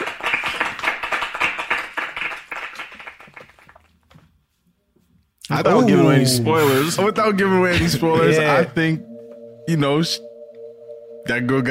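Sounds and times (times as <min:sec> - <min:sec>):
hands clapping: 0:00.0 - 0:04.1
speech: 0:05.5 - 0:09.1, 0:09.7 - 0:10.3, 0:11.3 - 0:11.6.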